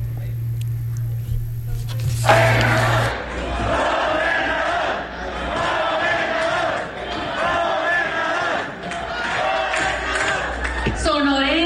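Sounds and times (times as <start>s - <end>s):
voices talking: 0.2s - 3.9s
Movimiento Ciudadano supporters chanting and cheering a politician's arrival: 2.2s - 11.5s.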